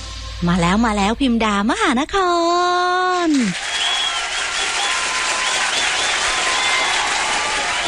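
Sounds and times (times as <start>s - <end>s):
speech: 0.4s - 3.7s
applause welcoming the host: 3.3s - 7.8s.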